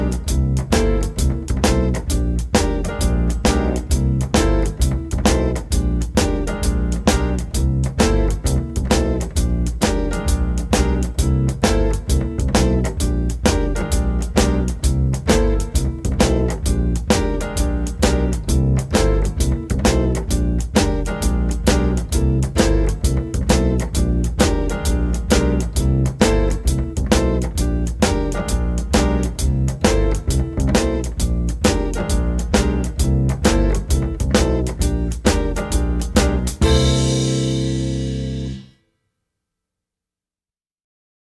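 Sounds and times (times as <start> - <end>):
shuffle improvisation: 0.0 - 37.6.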